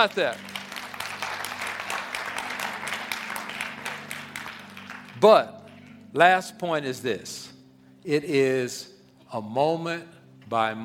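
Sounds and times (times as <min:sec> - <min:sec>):
speech: 0:00.0 - 0:00.5, 0:05.2 - 0:10.8
clapping: 0:00.0 - 0:06.0.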